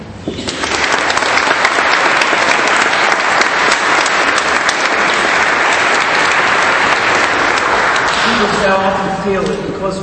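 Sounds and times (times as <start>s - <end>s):
applause in a church: 0.4s - 8.7s
speech: 8.7s - 10.0s.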